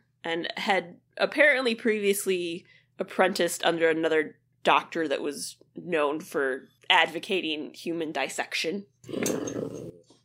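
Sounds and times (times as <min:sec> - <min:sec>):
speech: 0:00.2 - 0:09.7
dog growling: 0:09.1 - 0:10.0.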